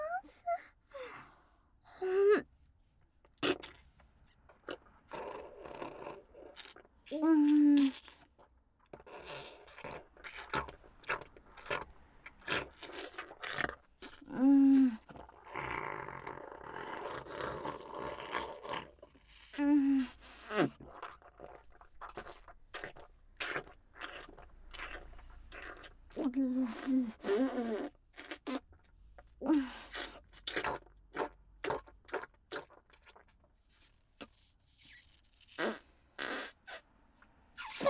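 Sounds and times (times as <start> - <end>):
soft chewing and eating: 2.6 - 37.8.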